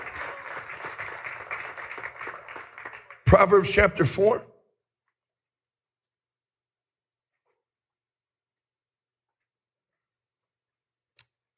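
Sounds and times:
audience hand clapping: 0:00.0 - 0:04.4
speech: 0:03.3 - 0:04.5.

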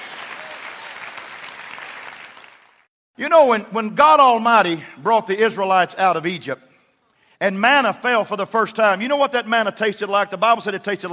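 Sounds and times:
audience clapping hands: 0:00.0 - 0:02.9
speech: 0:03.2 - 0:06.7, 0:07.4 - 0:11.1.

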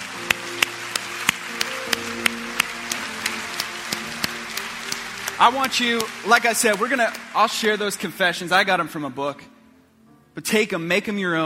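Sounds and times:
audience applause: 0:00.0 - 0:08.6
speech: 0:05.4 - 0:09.5, 0:10.4 - 0:11.4.

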